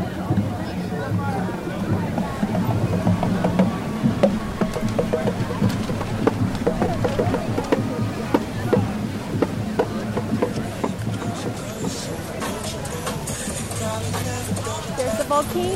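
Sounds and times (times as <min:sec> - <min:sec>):
crowd murmur: 0:00.0 - 0:15.7
festival fountain water splashing: 0:00.0 - 0:15.7
low rumble: 0:00.2 - 0:11.4.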